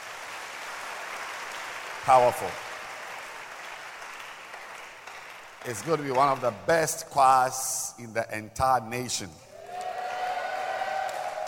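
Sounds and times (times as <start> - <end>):
audience clapping for the choir: 0.0 - 7.2, 9.6 - 11.4
speech: 2.0 - 2.7, 5.6 - 9.5.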